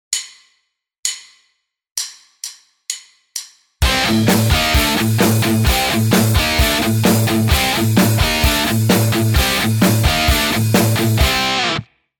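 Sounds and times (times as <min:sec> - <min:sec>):
guitar riff: 0:03.8 - 0:11.9.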